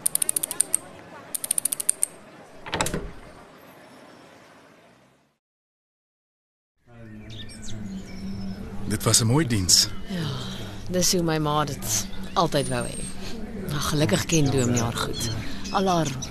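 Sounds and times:
lid being screwed onto a container with ratcheting clicks: 0:01.4 - 0:02.1
speech: 0:09.0 - 0:13.1, 0:13.7 - 0:16.2.

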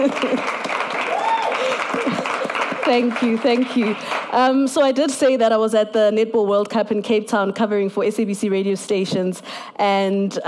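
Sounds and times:
speech: 0:00.0 - 0:00.6, 0:02.9 - 0:10.4
crowd applauding: 0:00.0 - 0:04.4
whoops and raised voices: 0:01.0 - 0:02.2.

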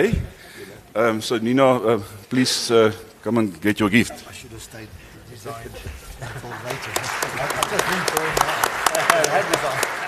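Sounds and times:
speech: 0:00.0 - 0:00.3, 0:01.0 - 0:10.0
audience applause: 0:06.2 - 0:10.0.

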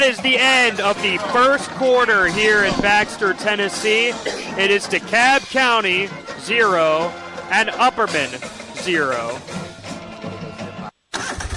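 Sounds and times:
speech: 0:00.0 - 0:09.6
lawn mower engine starting: 0:00.2 - 0:07.7, 0:11.2 - 0:11.5.

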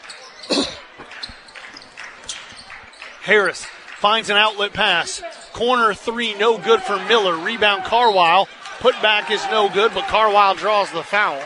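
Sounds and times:
basketball dribbling on a court during a high school game: 0:00.4 - 0:03.3
speech: 0:03.3 - 0:11.4.

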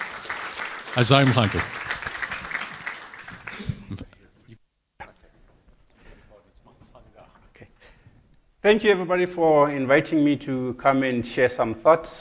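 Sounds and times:
audience applause for speaker: 0:00.0 - 0:04.1
speech: 0:01.0 - 0:01.8, 0:08.6 - 0:12.2.

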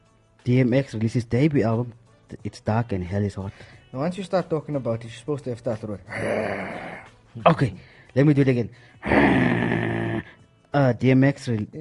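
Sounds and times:
speech: 0:00.4 - 0:09.9, 0:10.8 - 0:11.7
voice imitating a dog barking: 0:09.0 - 0:10.4.

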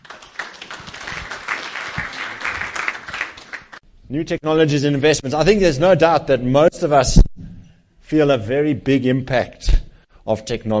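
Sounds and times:
audience applause: 0:00.0 - 0:03.8
speech: 0:04.1 - 0:07.3, 0:08.1 - 0:10.7.

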